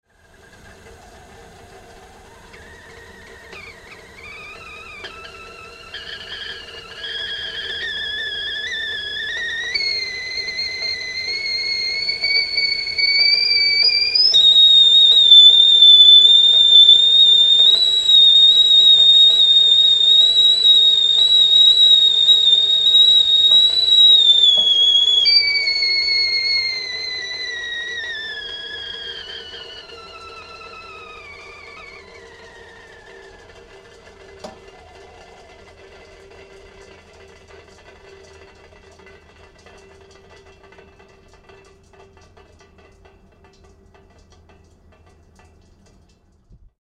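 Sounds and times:
kettle boiling: 0:00.2 - 0:46.2.

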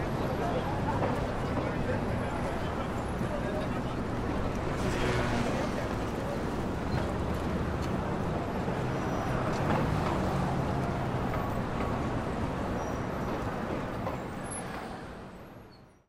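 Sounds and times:
people in Times Square New York: 0:00.0 - 0:07.2
city traffic in Times Square New York: 0:00.0 - 0:16.0.

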